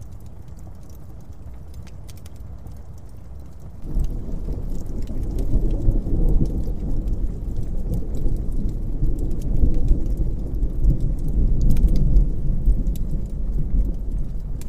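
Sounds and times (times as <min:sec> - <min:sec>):
fireplace crackles: 0:00.0 - 0:14.6
distant thunder: 0:03.8 - 0:14.6.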